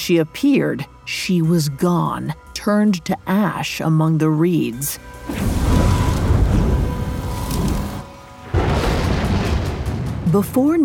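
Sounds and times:
speech: 0.0 - 5.5, 10.3 - 10.8
thunder crash: 5.3 - 10.3.

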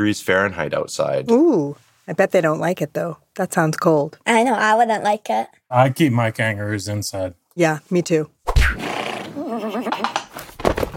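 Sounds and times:
speech: 0.0 - 8.9
person imitating a pony whinnying: 9.0 - 10.2.

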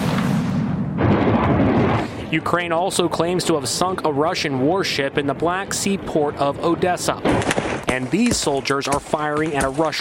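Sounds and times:
missile striking a helicopter in a loud explosion: 0.0 - 2.8, 7.2 - 8.7
speech: 2.3 - 9.9.

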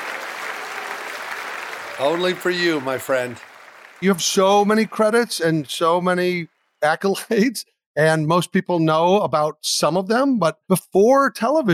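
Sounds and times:
applause track sound effect: 0.0 - 6.5
speech: 2.0 - 11.7.

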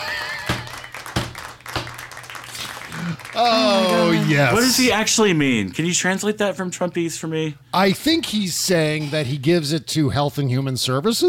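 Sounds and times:
small round of applause: 0.0 - 4.9
speech: 3.4 - 11.2.

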